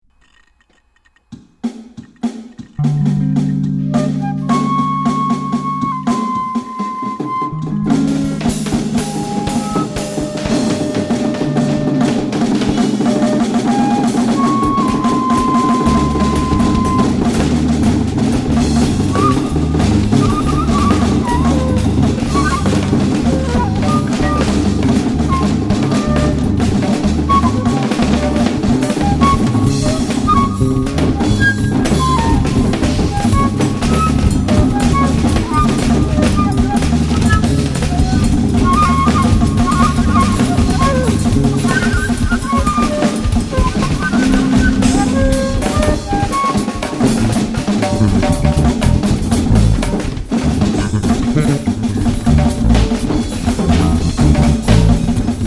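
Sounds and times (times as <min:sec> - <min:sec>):
free jazz: 0:02.0 - 0:55.4
laughter: 0:50.4 - 0:52.8.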